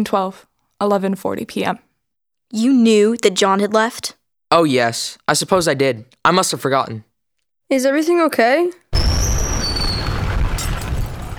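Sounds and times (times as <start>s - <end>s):
speech: 0.0s - 1.9s, 2.5s - 7.1s, 7.7s - 8.9s
ocean liner Titanic slamming into a huge iceberg: 9.0s - 11.3s.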